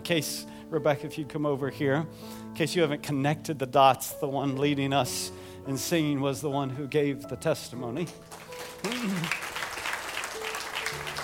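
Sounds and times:
speech: 0:00.1 - 0:09.4
audience applause: 0:08.3 - 0:11.2.

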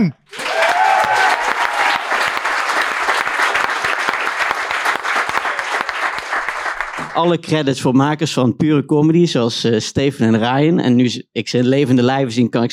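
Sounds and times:
speech: 0:00.0 - 0:00.4, 0:07.2 - 0:12.7
audience applause: 0:00.3 - 0:07.3.

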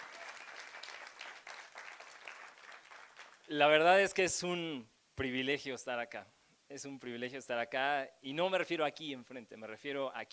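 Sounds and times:
audience applause: 0:00.0 - 0:03.5
speech: 0:03.5 - 0:10.3.

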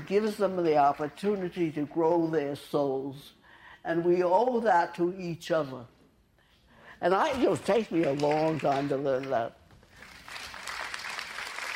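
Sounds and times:
audience clapping: 0:00.0 - 0:01.7, 0:07.3 - 0:11.7
speech: 0:00.1 - 0:06.0, 0:07.0 - 0:09.6.

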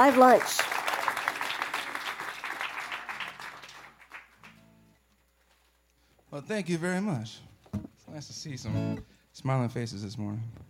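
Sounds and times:
speech: 0:00.0 - 0:00.7, 0:06.3 - 0:10.6
studio audience applause in Louisville welcoming a live radio performer: 0:00.0 - 0:04.6.

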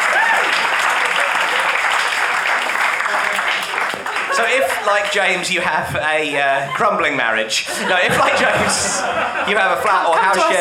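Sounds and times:
audience applause: 0:00.0 - 0:05.4
laughter: 0:03.2 - 0:05.4, 0:06.4 - 0:10.5
speech: 0:04.9 - 0:10.5.

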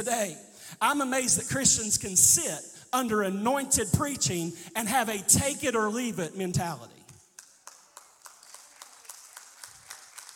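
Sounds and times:
speech: 0:00.0 - 0:07.0
faint scattered clapping: 0:07.1 - 0:10.3.

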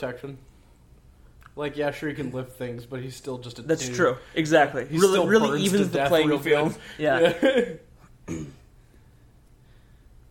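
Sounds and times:
speech: 0:00.0 - 0:00.5, 0:01.6 - 0:08.6
hiss: 0:00.0 - 0:10.2
laughter: 0:05.0 - 0:07.9
throat clearing: 0:08.2 - 0:08.7.

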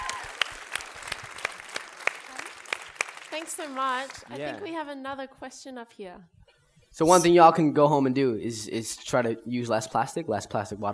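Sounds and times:
audience applause: 0:00.0 - 0:04.7
speech: 0:03.4 - 0:06.4, 0:07.0 - 0:10.9.

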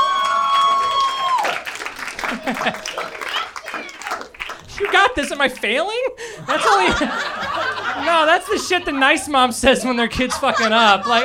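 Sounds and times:
person applauding: 0:00.0 - 0:05.7
laughter: 0:02.1 - 0:03.8, 0:06.2 - 0:11.2
speech: 0:02.5 - 0:03.0, 0:04.9 - 0:07.4, 0:08.0 - 0:11.2.

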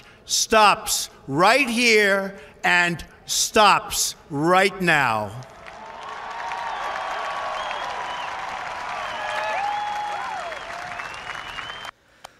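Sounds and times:
speech: 0:00.3 - 0:05.5
crowd applause after speech: 0:05.3 - 0:11.9
faint cheers: 0:05.5 - 0:11.9
high whistles: 0:06.6 - 0:11.9.

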